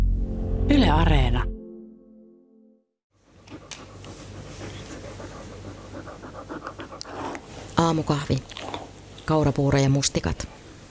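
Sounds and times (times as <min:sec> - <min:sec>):
speech: 0:00.7 - 0:01.5, 0:07.9 - 0:08.6, 0:09.3 - 0:10.5
dog panting: 0:03.3 - 0:07.8.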